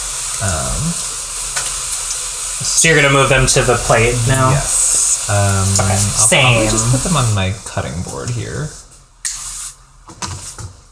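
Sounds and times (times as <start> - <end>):
food sizzling in hot oil: 0.0 - 10.6
speech: 0.4 - 1.2, 2.6 - 9.4
person humming or murmuring: 3.7 - 7.3.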